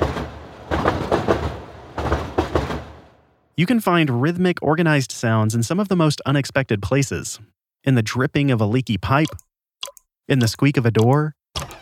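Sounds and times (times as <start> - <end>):
rhythmic hum of the Uptown C train: 0.0 - 3.2
speech: 3.6 - 11.7.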